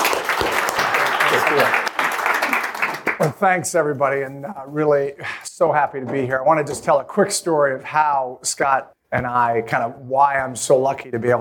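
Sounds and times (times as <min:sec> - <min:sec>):
audience applause welcoming a speaker at a High Alpha event: 0:00.0 - 0:03.4
speech: 0:01.3 - 0:01.8, 0:03.2 - 0:11.4.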